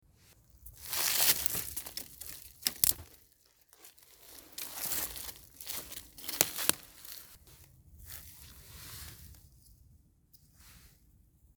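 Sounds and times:
branches pushed aside: 0.7s - 7.4s.

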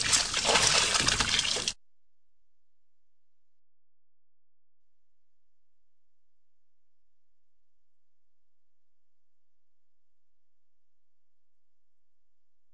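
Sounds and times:
waves splashing against the side of a boat: 0.0s - 1.8s.

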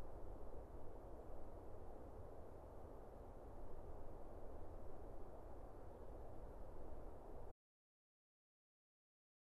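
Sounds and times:
winter forest ambience: 0.0s - 7.5s.

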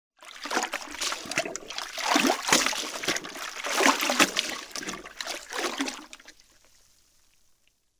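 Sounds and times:
mop lowered into bucket and raised: 0.2s - 6.3s.

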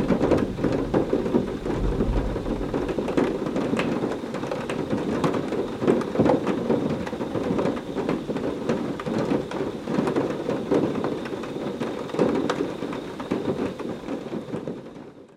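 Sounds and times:
thunder rumbling: 0.0s - 6.2s
large raindrops: 0.0s - 15.2s.

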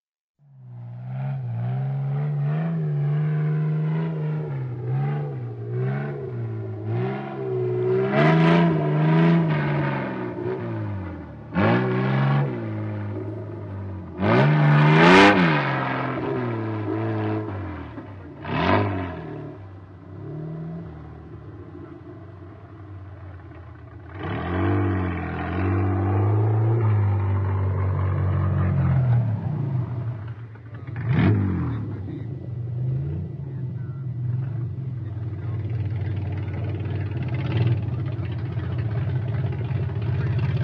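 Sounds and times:
vehicle approaching driving by and driving away: 0.4s - 40.6s.

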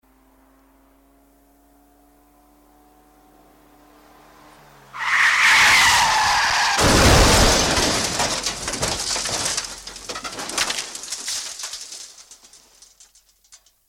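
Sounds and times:
long approach and crash: 5.0s - 13.4s.

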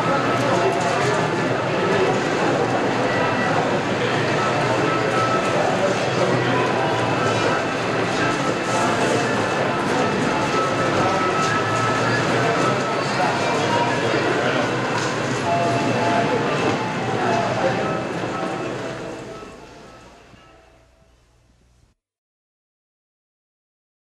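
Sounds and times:
man making airport announcements: 0.0s - 20.0s
airport background noise: 0.0s - 22.0s.

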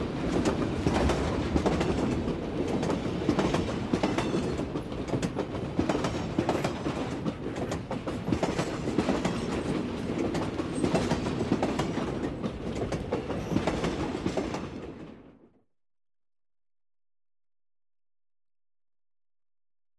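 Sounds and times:
train passing by: 0.0s - 15.5s.

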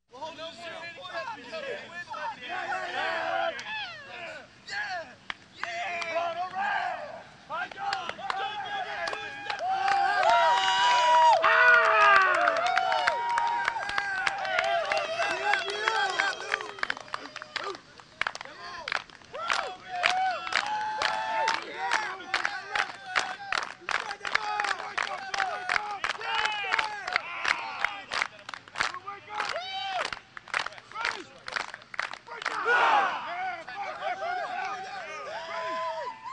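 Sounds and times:
amateur football fans crowd: 0.2s - 36.3s.

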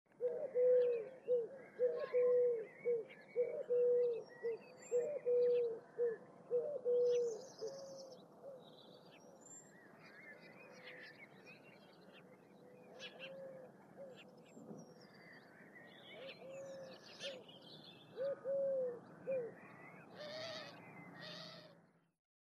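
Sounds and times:
turtle dove on the street: 0.2s - 8.6s, 13.0s - 14.3s, 16.2s - 17.5s, 18.1s - 21.8s.

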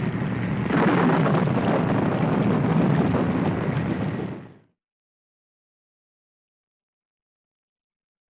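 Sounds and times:
thunder: 0.0s - 4.6s
strong wind: 0.0s - 4.8s.

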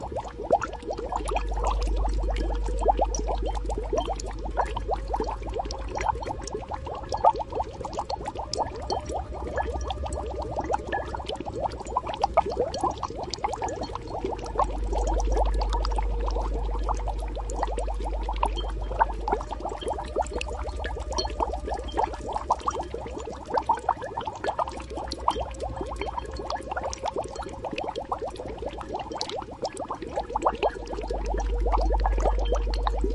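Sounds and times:
magical boiling: 0.0s - 33.1s.

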